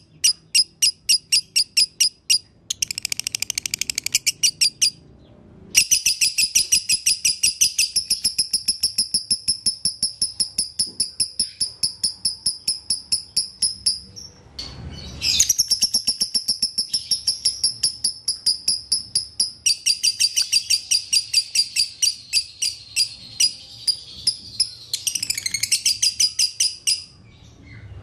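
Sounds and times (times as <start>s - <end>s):
Lovebird chirping: 0.0s - 5.0s, 5.8s - 27.9s.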